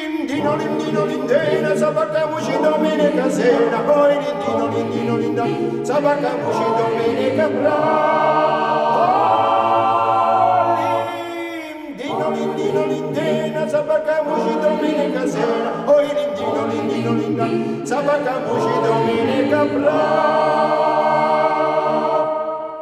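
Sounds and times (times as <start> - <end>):
choir singing: 0.2 - 22.8.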